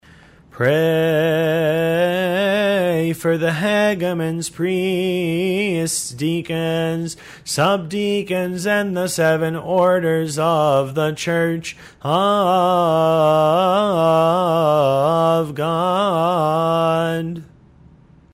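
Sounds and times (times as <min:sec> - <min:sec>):
hymns: 0:00.1 - 0:17.5
litany of the clergy: 0:00.6 - 0:17.5.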